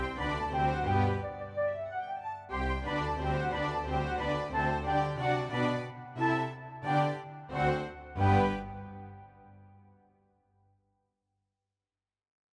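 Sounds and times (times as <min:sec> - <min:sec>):
cello karaoke track: 0:00.0 - 0:09.7.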